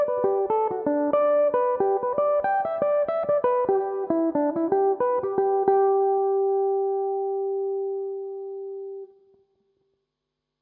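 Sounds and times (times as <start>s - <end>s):
mandolin playing in G major: 0.0s - 8.0s.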